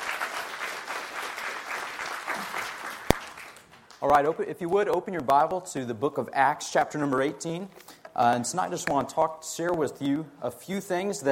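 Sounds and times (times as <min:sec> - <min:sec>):
audience applause: 0:00.0 - 0:04.0
speech: 0:04.0 - 0:11.3.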